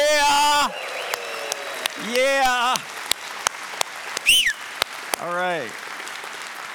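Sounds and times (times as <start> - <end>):
audience clapping and cheering: 0.0 - 6.7
sharp high-pitched whistle: 4.3 - 4.6.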